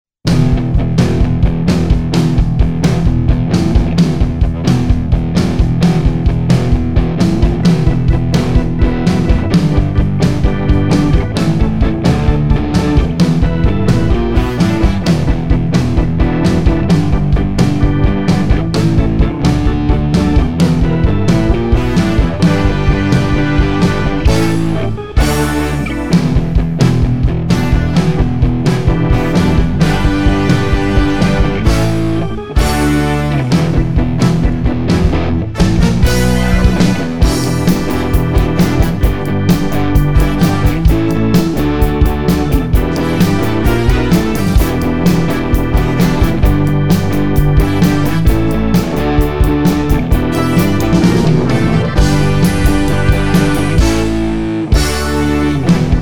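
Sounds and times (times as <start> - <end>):
instrumental music: 0.3 - 56.0.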